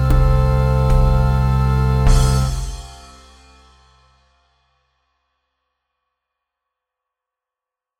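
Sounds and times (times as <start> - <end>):
distortion: 0.0 - 4.4.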